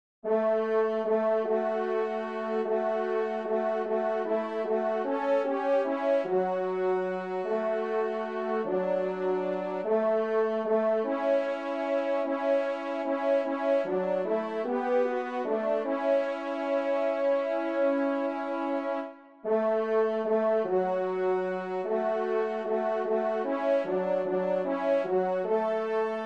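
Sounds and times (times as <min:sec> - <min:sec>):
trumpet playing a liturgical chant: 0:00.2 - 0:26.2.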